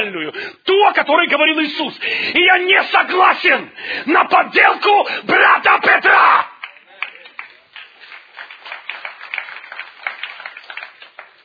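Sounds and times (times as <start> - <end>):
speech: 0.0 - 6.5
weak audience applause: 6.6 - 11.4.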